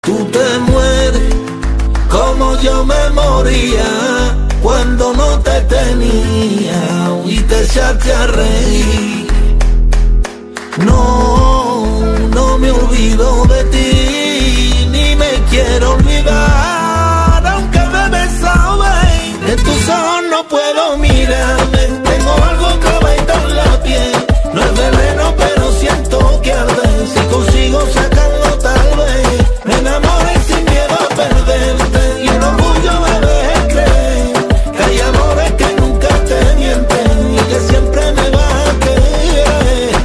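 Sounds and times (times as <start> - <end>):
flamenco music: 0.0 - 40.0.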